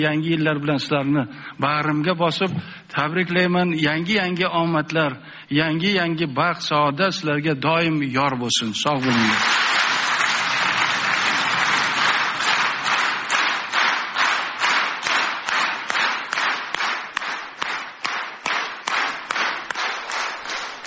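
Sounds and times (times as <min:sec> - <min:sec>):
speech: 0:00.0 - 0:09.8
audience applauding after a New Year's greeting: 0:09.0 - 0:20.8.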